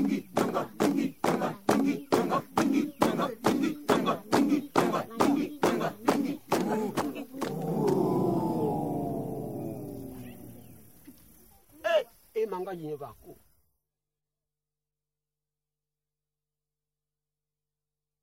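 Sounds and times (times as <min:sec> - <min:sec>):
Central African choir singing: 0:00.0 - 0:10.9.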